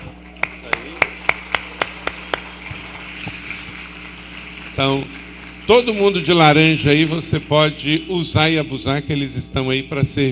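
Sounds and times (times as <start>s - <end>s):
audience applause for volunteers: 0.4s - 7.9s
speech: 4.8s - 10.2s.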